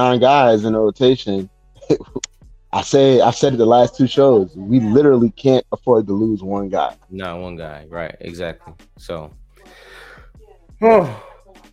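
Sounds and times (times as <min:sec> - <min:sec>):
speech: 0:00.0 - 0:02.1, 0:02.7 - 0:10.0, 0:10.8 - 0:11.3
quiet breathing: 0:09.6 - 0:10.4
man yawning: 0:10.8 - 0:11.3.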